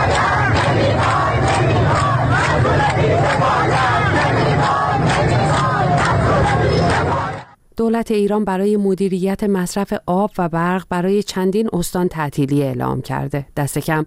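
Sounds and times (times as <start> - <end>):
protest crowd chanting outside government building: 0.0 - 7.6
speech: 7.8 - 14.0.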